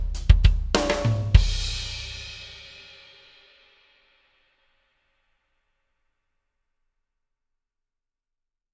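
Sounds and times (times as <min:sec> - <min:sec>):
tap slides backing track music: 0:00.0 - 0:02.4.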